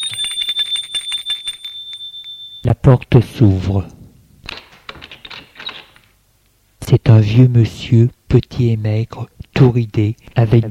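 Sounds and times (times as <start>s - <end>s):
doorbell ringing: 0.0s - 2.7s
speech: 2.8s - 4.0s, 7.0s - 10.6s.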